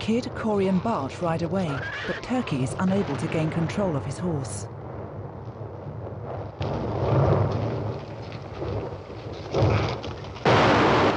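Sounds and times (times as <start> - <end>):
speech: 0.1 - 4.8
explosions in a film scene: 2.4 - 11.1.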